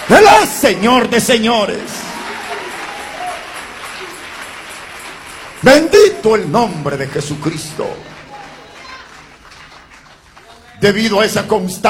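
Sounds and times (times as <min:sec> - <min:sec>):
audience applause: 0:00.0 - 0:10.9
speech: 0:00.1 - 0:02.0, 0:05.6 - 0:08.1, 0:10.8 - 0:11.8.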